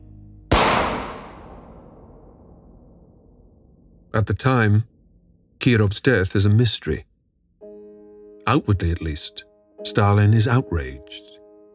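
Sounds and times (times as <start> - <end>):
gunshot of an assassin firing into the back of Kirov's neck: 0.5 - 2.8
speech: 4.1 - 4.9, 5.6 - 7.1, 8.5 - 11.3.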